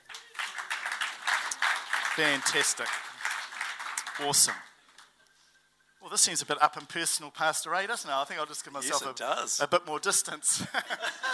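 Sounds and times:
audience clapping: 0:00.0 - 0:05.2
speech: 0:02.2 - 0:03.0, 0:04.2 - 0:04.7, 0:06.1 - 0:11.3
laughter: 0:10.6 - 0:11.3.

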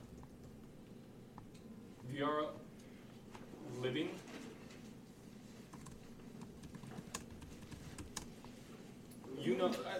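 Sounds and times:
speech: 0:02.1 - 0:02.7, 0:03.7 - 0:04.4, 0:09.4 - 0:09.9
typing on a computer keyboard: 0:05.7 - 0:08.3.

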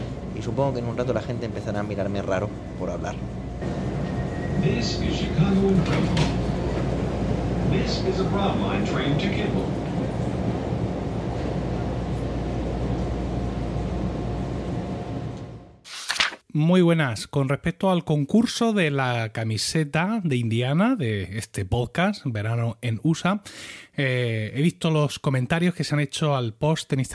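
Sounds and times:
moving metro train rumbling: 0:00.0 - 0:15.8
speech: 0:00.4 - 0:04.0, 0:04.6 - 0:06.4, 0:07.7 - 0:09.8, 0:16.6 - 0:27.1.

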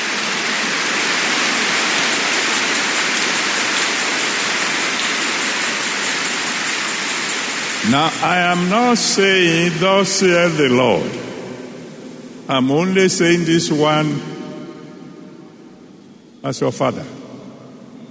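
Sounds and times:
audience applause: 0:00.2 - 0:09.0
speech: 0:07.9 - 0:11.3, 0:12.5 - 0:14.4, 0:16.4 - 0:17.2.

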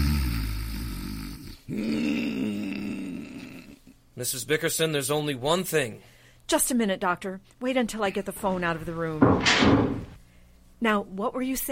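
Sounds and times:
loud rasping snore: 0:00.0 - 0:03.8
speech: 0:04.2 - 0:10.1, 0:10.8 - 0:11.6.

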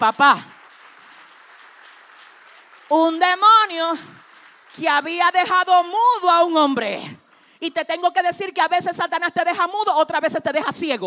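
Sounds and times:
speech: 0:00.0 - 0:00.5, 0:02.9 - 0:04.2, 0:04.8 - 0:11.0
audience applause: 0:00.0 - 0:05.9.

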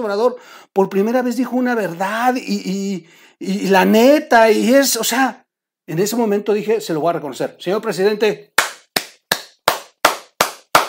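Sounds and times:
speech: 0:00.0 - 0:08.5
person clapping hands: 0:08.6 - 0:10.8.

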